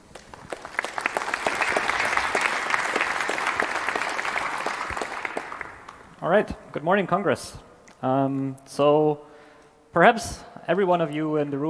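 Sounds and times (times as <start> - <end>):
audience applause: 0.0 - 6.2
speech: 6.2 - 9.3, 10.0 - 11.6.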